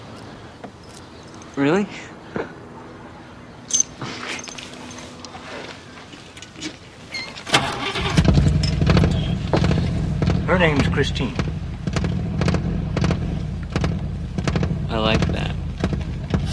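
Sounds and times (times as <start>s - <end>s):
speech: 1.6s - 2.6s, 10.5s - 11.5s, 15.0s - 15.5s
1957 car engine starting up: 7.4s - 16.5s.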